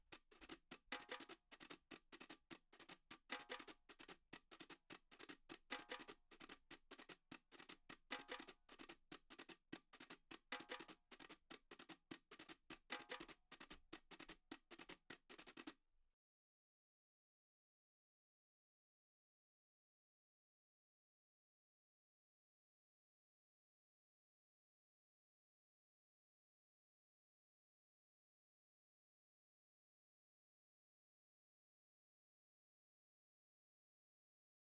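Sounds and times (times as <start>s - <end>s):
percussion: 0.0s - 15.8s.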